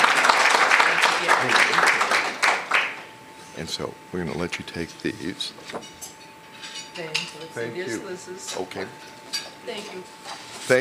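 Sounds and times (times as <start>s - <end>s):
audience applause for retiring board members at a world affairs council gathering: 0.0s - 3.1s
speech: 3.6s - 6.1s, 7.0s - 10.7s.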